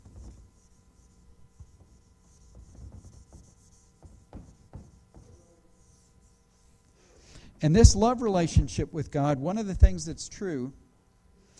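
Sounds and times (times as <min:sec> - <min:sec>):
eraser scrubbing writing off a board: 0:00.0 - 0:07.0
speech: 0:07.6 - 0:10.8.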